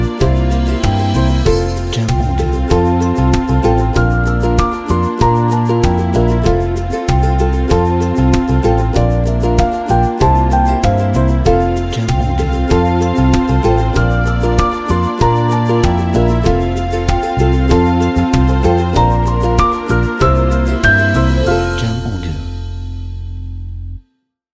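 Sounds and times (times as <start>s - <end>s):
happy romantic acoustic music: 0.0s - 23.9s.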